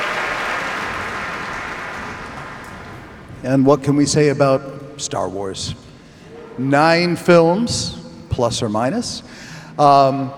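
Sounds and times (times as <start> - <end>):
concert audience applause after an orchestral performance: 0.0 - 3.7
speech: 3.4 - 5.8, 6.6 - 10.3.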